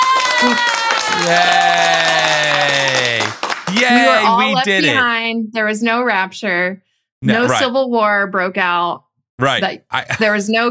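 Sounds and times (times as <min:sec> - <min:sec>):
applause from a soundboard: 0:00.0 - 0:05.0
speech: 0:00.4 - 0:02.8, 0:03.8 - 0:10.6
laughter: 0:00.4 - 0:05.0, 0:07.2 - 0:07.7, 0:09.4 - 0:10.6.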